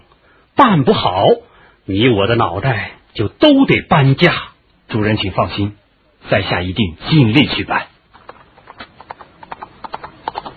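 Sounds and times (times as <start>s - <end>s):
speech: 0.6s - 7.9s
horse hooves galloping: 8.1s - 10.5s.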